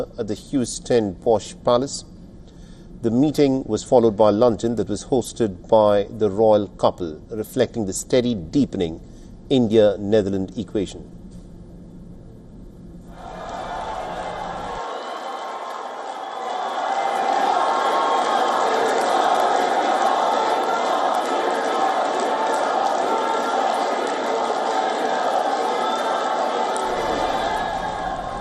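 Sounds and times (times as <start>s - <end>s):
speech: 0.0s - 2.1s, 3.0s - 11.2s
large Indian diaspora crowd cheering to welcome the Indian Prime Minister at The Hague: 13.1s - 28.4s.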